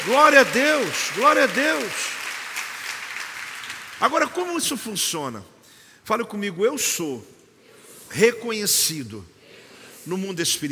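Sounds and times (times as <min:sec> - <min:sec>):
speech: 0:00.0 - 0:02.2, 0:04.0 - 0:05.5, 0:06.1 - 0:07.4, 0:08.1 - 0:09.3, 0:10.0 - 0:10.6
audience applause: 0:00.0 - 0:04.5.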